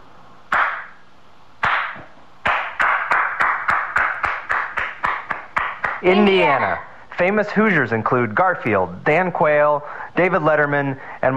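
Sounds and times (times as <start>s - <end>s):
slow handclaps speeding into applause: 0.5s - 1.0s, 1.6s - 6.1s
speech: 6.0s - 11.3s.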